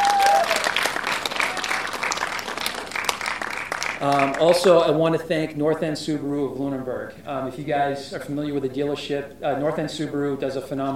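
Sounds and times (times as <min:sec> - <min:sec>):
applause: 0:00.0 - 0:04.7
speech: 0:04.0 - 0:10.9.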